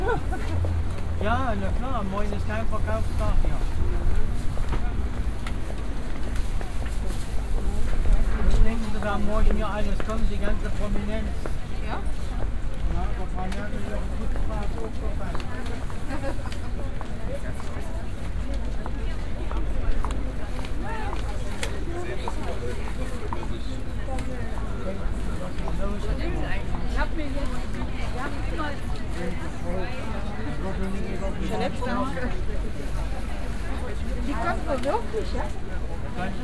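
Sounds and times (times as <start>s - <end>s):
fruit stand ambience at a market square: 0.0s - 36.4s.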